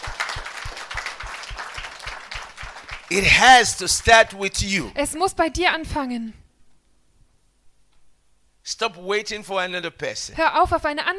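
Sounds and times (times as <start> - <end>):
church congregation clapping for the Lord during a bilingual worship service: 0.0 - 4.8
speech: 3.1 - 6.4, 8.8 - 11.1.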